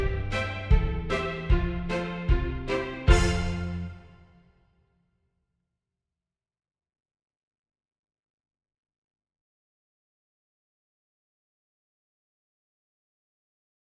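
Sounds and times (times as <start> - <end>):
horns playing a folk tune in fifths: 0.0 - 4.2.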